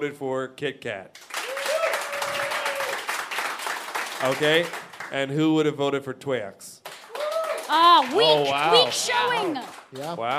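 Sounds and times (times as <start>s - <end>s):
speech: 0.0s - 1.3s, 4.2s - 6.7s, 7.7s - 10.3s
audience applause: 1.2s - 5.2s, 6.8s - 10.3s.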